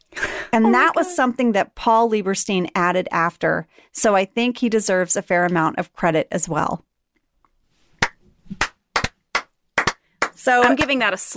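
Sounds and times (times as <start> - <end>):
speech: 0.5 - 6.9, 10.4 - 11.3
slow clap building into big clap: 8.0 - 11.0.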